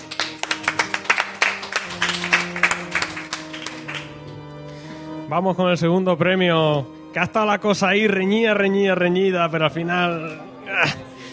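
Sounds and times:
audience applause: 0:00.0 - 0:04.2
speech: 0:05.3 - 0:11.0.

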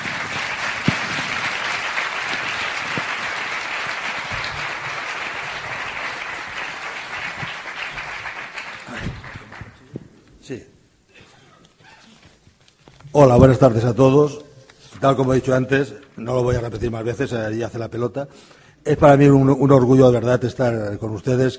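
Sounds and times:
crowd clapping to welcome a guest speaker at a talk in Seville: 0:00.0 - 0:10.0
speech: 0:10.5 - 0:10.7, 0:13.2 - 0:21.5.

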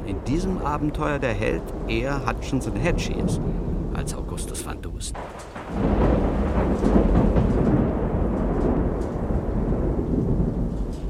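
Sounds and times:
heavy rain over the harbour of Bastia: 0:00.0 - 0:11.0
rolling thunder over the harbour of Bastia: 0:00.0 - 0:11.0
speech: 0:00.1 - 0:07.6.

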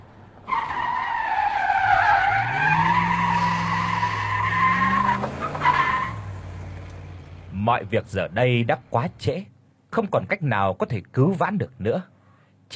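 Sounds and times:
truck brake screech: 0:00.5 - 0:07.0
low engine rumble: 0:06.1 - 0:09.8
speech: 0:07.7 - 0:12.1.

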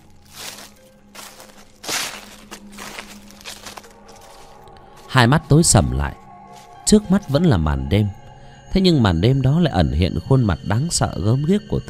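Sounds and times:
footsteps rustling on dry leaves: 0:00.0 - 0:07.4
speech: 0:05.1 - 0:06.2, 0:06.9 - 0:11.8.

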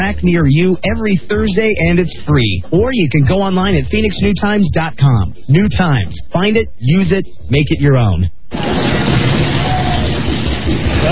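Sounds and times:
speech: 0:00.0 - 0:09.2
roller coaster and Big Shot ride atop the Stratosphere tower in Las Vegas: 0:08.5 - 0:11.0.

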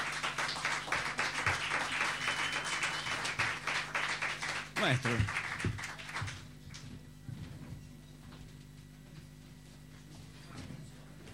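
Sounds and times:
audience applause welcoming a musician at a poetry evening: 0:00.0 - 0:06.5
speech: 0:04.8 - 0:05.4.

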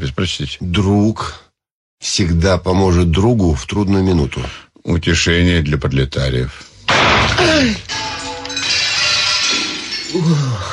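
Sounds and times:
speech: 0:00.1 - 0:01.4, 0:02.0 - 0:08.0, 0:10.1 - 0:10.7
trophy cup shattering, breaking metal and glass: 0:06.8 - 0:10.7
gunshot: 0:06.9 - 0:07.6.

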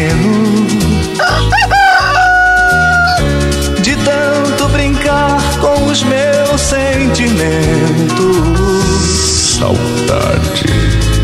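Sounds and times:
loud steady music with a strong bass line: 0:00.0 - 0:11.2
rooster crowing: 0:01.2 - 0:03.3.

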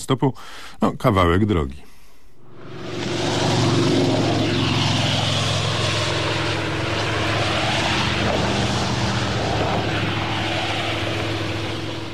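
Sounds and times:
speech: 0:00.0 - 0:01.9
car engine drone driving through Sopot, Poland: 0:02.4 - 0:12.1
road noise: 0:02.5 - 0:12.1.

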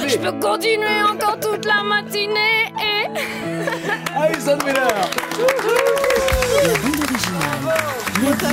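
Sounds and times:
speech: 0:00.1 - 0:08.5
audience applause: 0:03.9 - 0:08.5.

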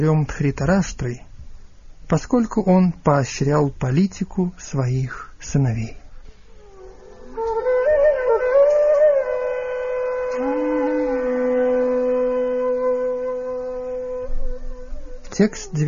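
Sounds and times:
speech: 0:00.0 - 0:01.3, 0:02.1 - 0:06.0, 0:15.4 - 0:15.8
conch shells blowing in a roar: 0:06.6 - 0:15.4.

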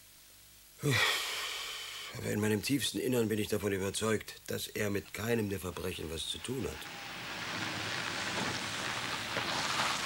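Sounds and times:
speech: 0:00.8 - 0:01.2, 0:02.2 - 0:07.1
rain falling: 0:05.0 - 0:10.0.

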